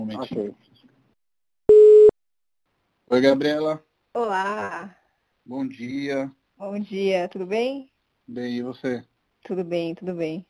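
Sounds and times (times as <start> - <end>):
speech: 0.1 - 0.8, 3.1 - 10.4
telephone tone while a call is placed: 1.7 - 2.2.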